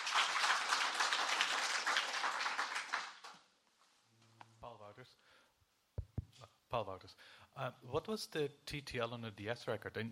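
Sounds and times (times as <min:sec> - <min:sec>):
audience applause: 0:00.0 - 0:03.4
speech: 0:06.7 - 0:10.0.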